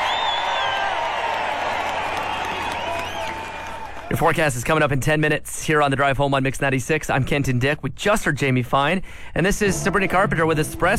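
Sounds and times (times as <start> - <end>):
round of applause sound effect: 0.0 - 4.3
speech: 4.1 - 10.9.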